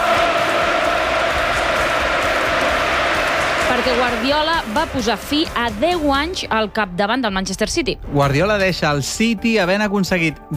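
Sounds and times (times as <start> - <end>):
large stadium crowd applauding and cheering: 0.0 - 6.4
speech: 3.8 - 10.5.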